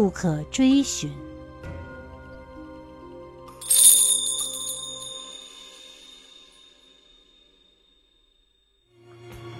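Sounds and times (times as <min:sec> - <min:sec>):
speech: 0:00.0 - 0:01.3
silver bells tinkling in the wind: 0:03.6 - 0:07.1.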